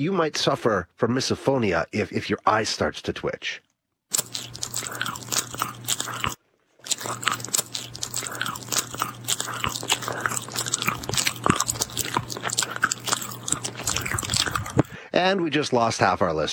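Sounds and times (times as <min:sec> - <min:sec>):
speech: 0:00.0 - 0:03.7, 0:15.2 - 0:16.5
loud chewing and crunching food: 0:04.1 - 0:15.0.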